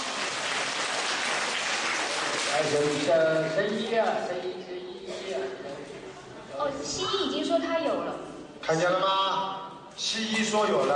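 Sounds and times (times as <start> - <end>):
applause: 0.0 - 3.6
speech: 2.6 - 5.8, 6.6 - 10.9.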